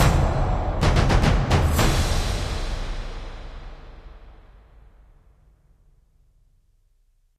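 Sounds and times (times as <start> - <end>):
victory stinger: 0.0 - 3.0.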